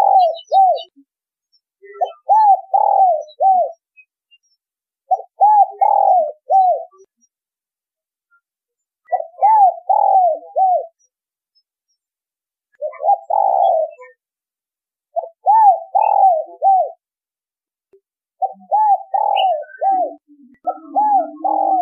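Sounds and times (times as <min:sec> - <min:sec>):
spotted dove cooing: 0:00.0 - 0:01.0, 0:02.0 - 0:03.8, 0:05.1 - 0:07.0, 0:09.1 - 0:11.0, 0:12.8 - 0:14.2, 0:15.2 - 0:17.0, 0:18.4 - 0:21.8.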